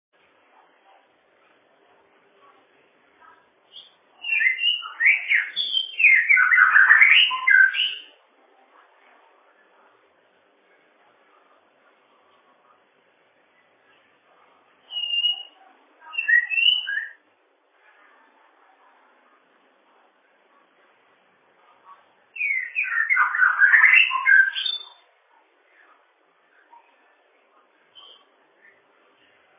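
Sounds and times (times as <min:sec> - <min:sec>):
bird song: 0:03.7 - 0:08.2, 0:14.8 - 0:17.2, 0:22.4 - 0:25.1, 0:27.9 - 0:28.8.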